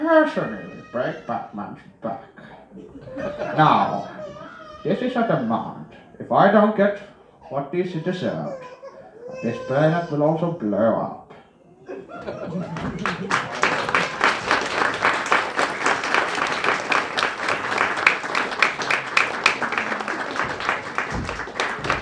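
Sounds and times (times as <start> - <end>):
speech: 0.1 - 11.2, 12.1 - 13.5
laughter: 2.0 - 4.6, 11.6 - 22.0
audience applause: 12.2 - 22.0.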